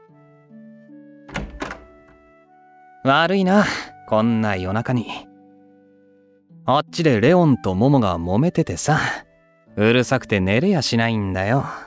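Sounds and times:
door being opened at night: 1.3 - 2.2
speech: 3.0 - 5.3, 6.7 - 11.8.

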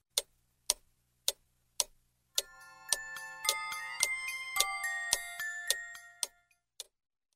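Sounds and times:
big clock ticking: 0.1 - 7.0
bright tinkling chime melody of a big clock: 2.4 - 6.6.

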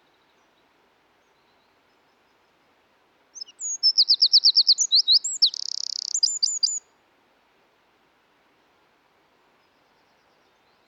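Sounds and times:
Eurasian wren Troglodytes troglodytes singing: 3.4 - 6.8.

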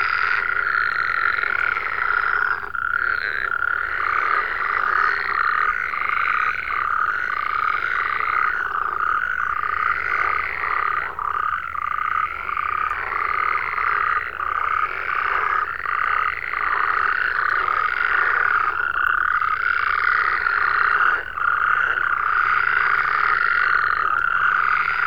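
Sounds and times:
frogs croaking in a dense chorus: 0.0 - 25.0.

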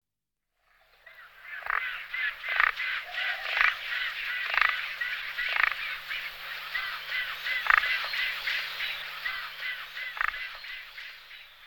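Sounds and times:
great white pelicans grunting and moaning: 1.4 - 10.6.

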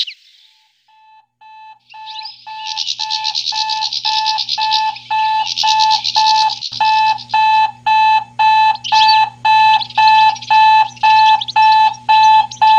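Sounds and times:
songbird twittering: 1.1 - 12.7.

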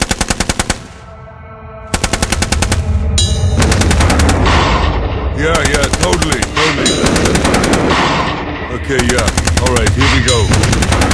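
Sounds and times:
rifle gunfire sound effect: 0.0 - 1.0, 1.9 - 2.9, 3.6 - 4.9, 5.6 - 8.4, 9.0 - 11.1.

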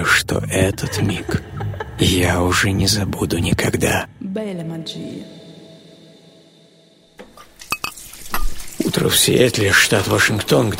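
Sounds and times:
laughter: 0.0 - 3.2
speech: 0.0 - 5.4, 8.8 - 10.7
glass clinks: 7.7 - 8.6.

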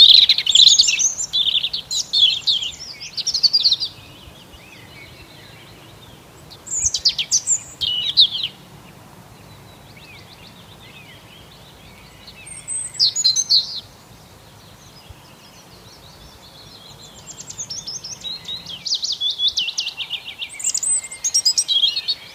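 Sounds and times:
several birds singing on an early spring morning: 0.0 - 22.3.

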